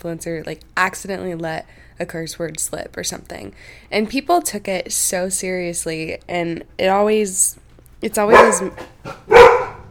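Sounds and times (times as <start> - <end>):
speech: 0.0 - 9.4
dogs barking: 8.3 - 9.9.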